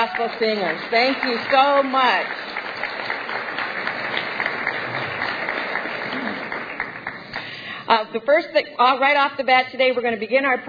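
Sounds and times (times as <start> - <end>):
speech: 0.0 - 2.6, 7.9 - 10.6
audience applauding: 0.0 - 7.7.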